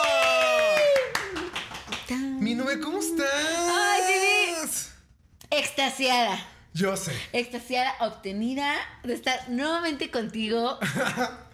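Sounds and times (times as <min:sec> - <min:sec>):
rhythmic clapping: 0:00.0 - 0:02.3
speech: 0:02.7 - 0:03.8, 0:05.8 - 0:11.5.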